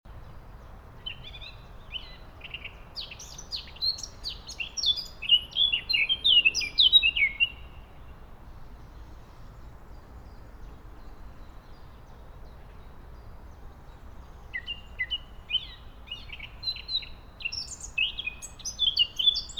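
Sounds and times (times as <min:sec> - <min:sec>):
Eurasian blackcap warbling song: 0:01.1 - 0:07.8, 0:14.5 - 0:19.5.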